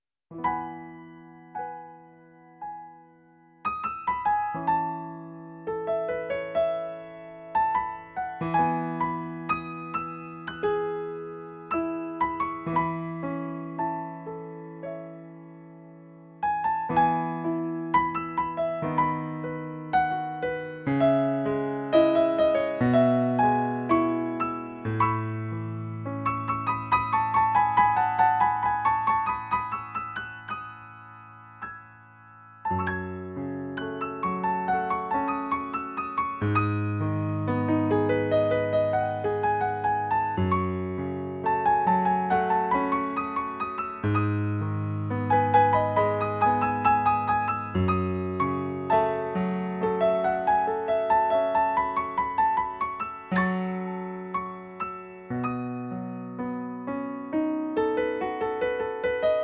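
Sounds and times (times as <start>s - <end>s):
piano: 0.0s - 59.4s.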